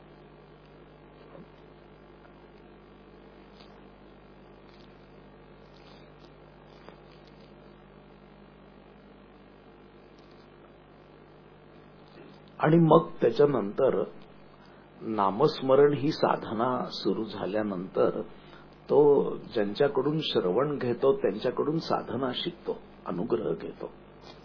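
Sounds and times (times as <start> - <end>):
electric fan running: 0.0 - 8.6, 9.3 - 24.4
speech: 12.6 - 14.2, 15.1 - 24.4.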